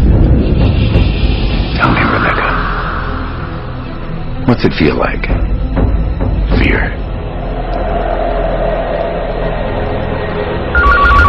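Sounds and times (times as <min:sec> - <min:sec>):
low wash: 0:00.0 - 0:11.2
speech: 0:04.5 - 0:05.5, 0:06.6 - 0:07.0
telephone ringing: 0:10.8 - 0:11.2.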